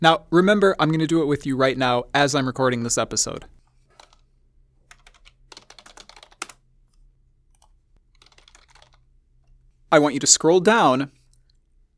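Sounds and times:
speech: 0:00.0 - 0:03.6, 0:09.9 - 0:11.2
Google search typed on a computer keyboard: 0:03.9 - 0:04.2, 0:04.8 - 0:06.6, 0:07.5 - 0:09.1.

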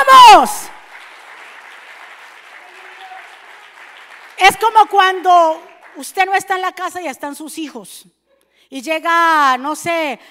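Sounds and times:
speech: 0:00.1 - 0:00.7, 0:04.4 - 0:10.2
audience applauding: 0:00.8 - 0:04.9.

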